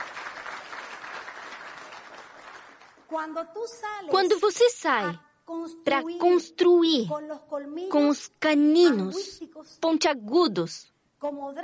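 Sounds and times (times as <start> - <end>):
audience applause: 0.0 - 3.1
speech: 3.1 - 11.6.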